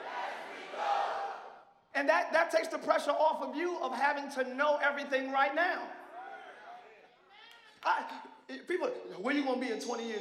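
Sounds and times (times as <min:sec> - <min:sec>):
audience screaming and cheering: 0:00.0 - 0:01.6
speech: 0:02.0 - 0:06.0, 0:07.8 - 0:10.1.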